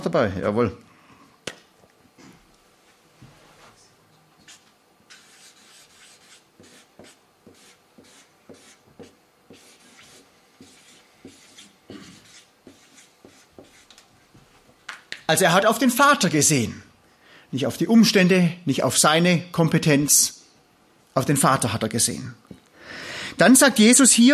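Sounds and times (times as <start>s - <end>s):
speech: 0.0s - 0.9s, 15.3s - 16.9s, 17.5s - 20.4s, 21.2s - 24.3s
pens scratching on paper as people write notes: 4.4s - 14.1s.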